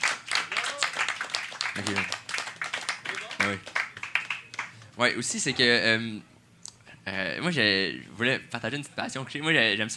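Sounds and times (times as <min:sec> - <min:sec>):
audience clapping: 0:00.0 - 0:05.0
speech: 0:01.8 - 0:02.2, 0:03.4 - 0:03.8, 0:05.0 - 0:06.3, 0:07.1 - 0:09.9.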